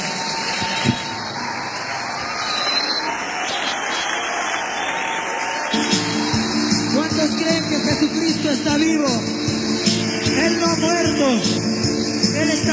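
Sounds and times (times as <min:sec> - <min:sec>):
audience applause: 0:00.0 - 0:11.6
speech: 0:10.5 - 0:11.7, 0:12.4 - 0:12.7.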